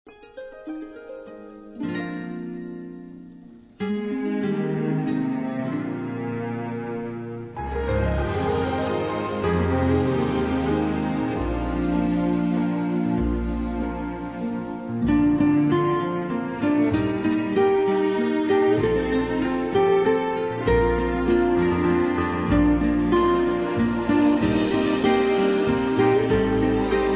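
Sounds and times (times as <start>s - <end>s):
victorious strings: 0.1s - 27.1s.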